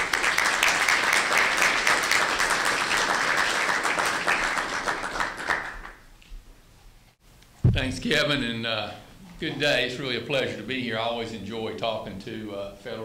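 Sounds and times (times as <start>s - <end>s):
audience applauding a speaker at a Federalist Society event: 0.0s - 6.1s
speech: 7.8s - 13.0s.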